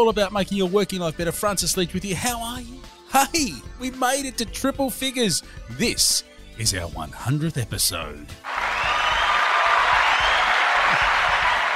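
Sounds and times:
speech: 0.0s - 8.7s
applause: 8.4s - 11.7s.

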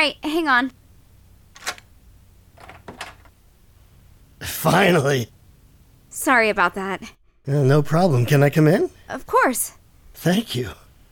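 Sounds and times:
speech: 0.0s - 0.8s, 4.4s - 5.4s, 6.2s - 10.8s
rattling clicks of a turning door handle: 2.6s - 3.3s.

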